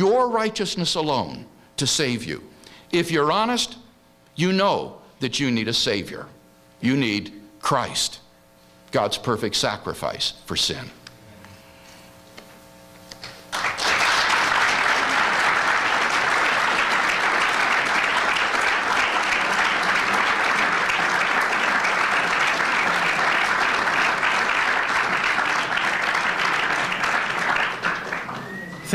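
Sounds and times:
speech: 0.0 - 3.8, 4.4 - 8.2, 8.9 - 11.0
audience applause at a debate: 13.5 - 28.9.

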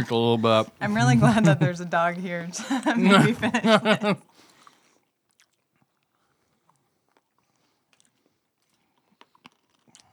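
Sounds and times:
speech: 0.0 - 4.4
laughter: 1.0 - 1.9, 2.5 - 4.2
crunchy chewing of a hard candy bar: 4.5 - 10.1.

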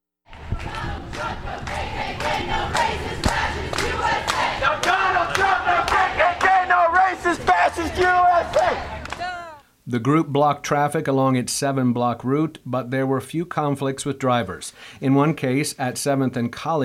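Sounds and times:
protest marchers chanting: 0.3 - 9.6
speech: 9.9 - 16.8.

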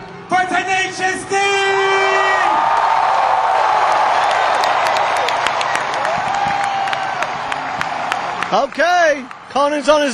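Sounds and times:
festival crowd roaring and cheering: 0.0 - 10.1
dense clapping: 3.8 - 10.1
speech: 8.5 - 10.1.

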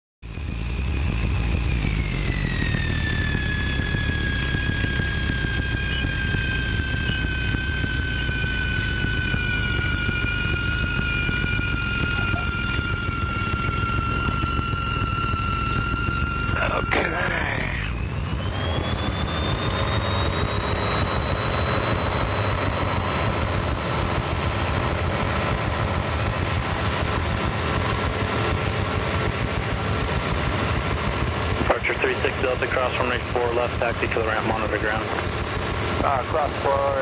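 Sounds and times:
small airplane engine flying the airport traffic pattern: 0.2 - 37.0.

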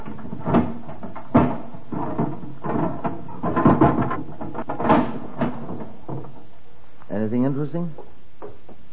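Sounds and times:
locked cupboard forced open with a pinch bar: 0.0 - 6.5
speech: 7.6 - 8.0.

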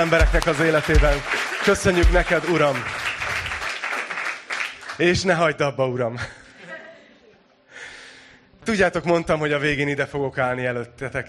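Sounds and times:
speech: 0.0 - 3.0, 5.0 - 6.4, 8.7 - 11.2
audience giving a big cheering applause: 0.0 - 5.0.

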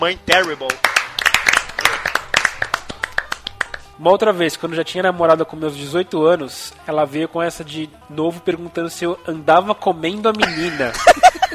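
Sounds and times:
speech: 0.0 - 1.0, 4.0 - 11.4
small group applause: 0.3 - 4.0
laughter: 10.4 - 11.5.

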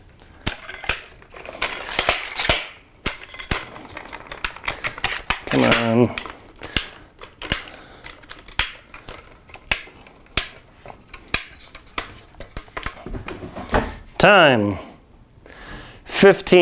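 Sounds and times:
camera tripod being set up quickly: 0.4 - 13.0
speech: 5.5 - 6.3, 14.2 - 14.9, 16.2 - 16.6.

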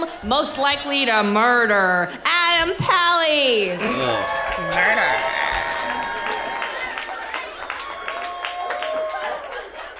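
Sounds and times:
speech: 0.0 - 5.4
crowd cheering: 3.8 - 9.8
clapping: 5.8 - 9.9.

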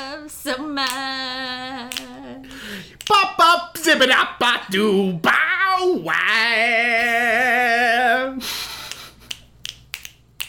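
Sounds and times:
speech: 0.4 - 1.1, 3.1 - 7.2
finger snapping: 1.8 - 3.2, 8.7 - 10.4.

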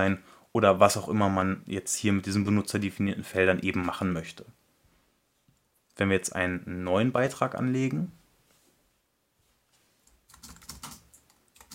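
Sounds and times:
speech: 0.0 - 4.6, 6.0 - 8.2
typing on a computer keyboard: 10.2 - 11.7.

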